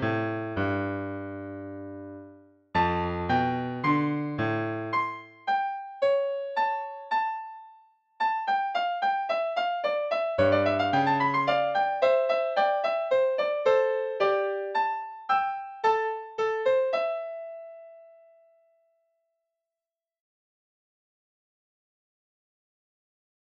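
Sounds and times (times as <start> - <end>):
piano intro: 0.0 - 7.6, 8.2 - 18.2.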